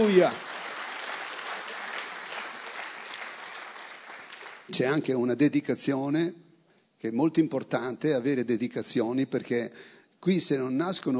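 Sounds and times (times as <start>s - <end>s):
speech: 0.0s - 0.4s, 4.7s - 6.4s, 7.0s - 11.1s
audience applauding: 0.0s - 5.0s.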